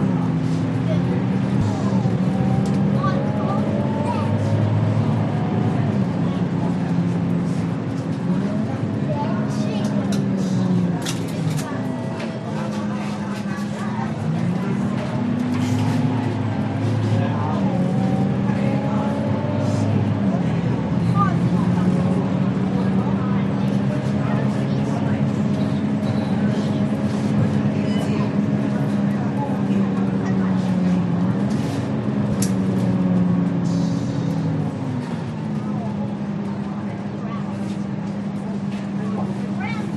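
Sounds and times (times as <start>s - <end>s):
slow bus ride inside a quiet bus in Singapore: 0.0s - 39.9s.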